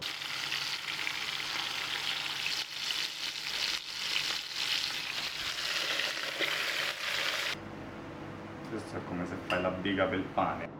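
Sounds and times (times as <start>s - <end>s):
fish heads sizzling in a soffritto: 0.0s - 7.6s
speech: 8.9s - 10.7s.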